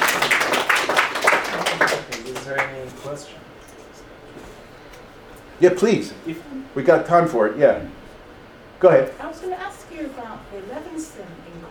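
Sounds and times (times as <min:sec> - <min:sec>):
scattered audience clapping at the close of a talk: 0:00.0 - 0:03.0
speech: 0:03.0 - 0:03.5, 0:05.6 - 0:08.0, 0:08.8 - 0:11.6.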